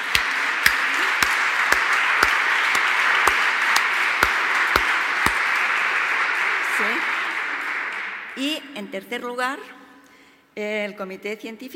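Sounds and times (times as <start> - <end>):
audience applause: 0.0 - 8.4
speech: 8.9 - 9.8, 10.6 - 11.7.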